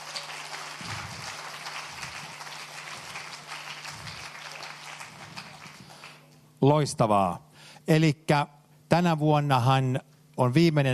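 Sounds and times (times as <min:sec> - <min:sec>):
crowd clapping: 0:00.0 - 0:06.4
speech: 0:06.6 - 0:10.9.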